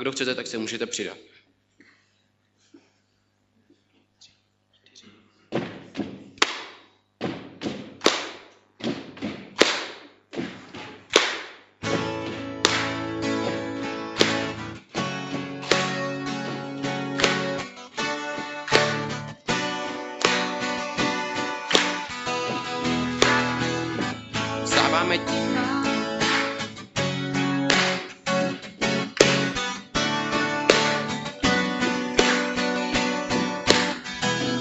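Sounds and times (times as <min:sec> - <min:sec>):
speech: 0:00.0 - 0:01.4
audience stomping: 0:05.5 - 0:34.5
audience clapping: 0:11.2 - 0:34.5.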